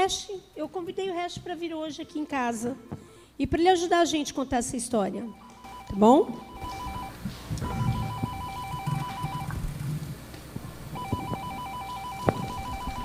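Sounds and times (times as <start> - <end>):
speech: 0.0 - 6.8
doorbell ringing: 5.4 - 9.5, 11.0 - 13.0.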